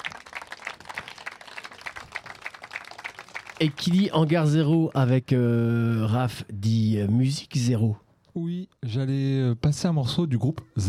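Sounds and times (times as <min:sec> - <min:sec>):
audience applause: 0:00.0 - 0:04.0
speech: 0:03.6 - 0:10.8.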